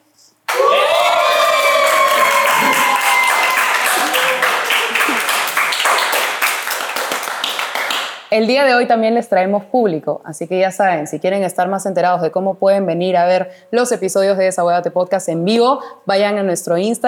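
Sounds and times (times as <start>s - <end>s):
production crew shouting and cheering: 0.5s - 6.9s
clapping: 0.5s - 8.3s
speech: 8.3s - 17.0s.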